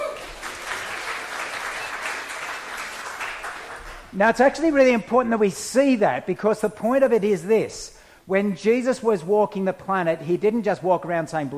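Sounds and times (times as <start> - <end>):
audience clapping: 0.0 - 4.3
speech: 4.1 - 11.5.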